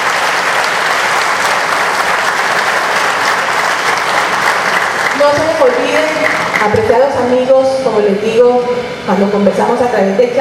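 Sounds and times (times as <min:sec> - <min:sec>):
audience applause: 0:00.0 - 0:06.8
speech: 0:05.2 - 0:10.3.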